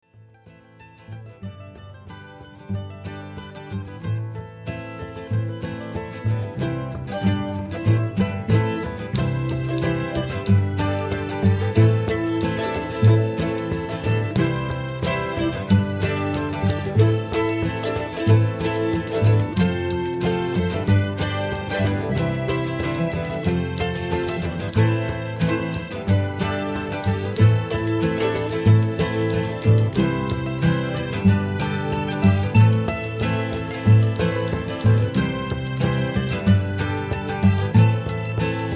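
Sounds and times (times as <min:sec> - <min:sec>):
rising mandolin: 0:00.1 - 0:38.7.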